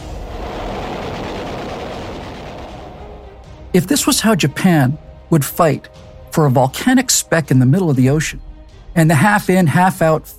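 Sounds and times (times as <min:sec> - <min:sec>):
plane in a low-level attack: 0:00.0 - 0:04.6
speech: 0:03.8 - 0:10.3.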